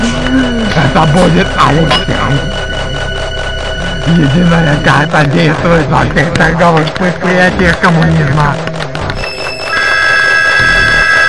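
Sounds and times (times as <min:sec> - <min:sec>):
electric bell ringing: 0:00.0 - 0:05.8, 0:09.2 - 0:11.2
speech: 0:00.9 - 0:02.6, 0:04.0 - 0:08.8.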